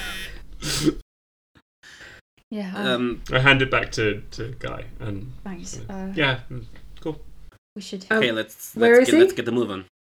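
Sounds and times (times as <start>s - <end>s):
speech: 0.8s - 1.0s, 2.5s - 9.9s
phone buzzing: 3.1s - 7.5s.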